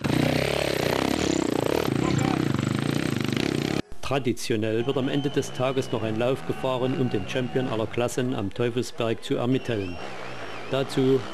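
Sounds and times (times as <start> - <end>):
KTM motorcycle engine with hydraulic front-wheel drive climbing a hill: 0.0 - 3.8
speech: 4.1 - 11.3.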